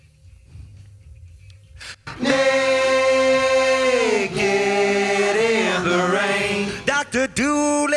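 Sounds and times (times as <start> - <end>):
person singing: 2.1 - 7.8.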